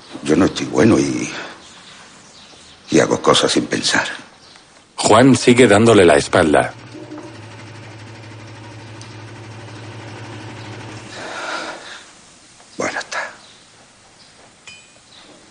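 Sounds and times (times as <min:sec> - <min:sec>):
speech: 0:00.2 - 0:01.6, 0:02.9 - 0:04.3, 0:05.1 - 0:06.8
engine idling while someone works on it: 0:05.8 - 0:11.3
sharp metallic clinks: 0:14.6 - 0:15.2.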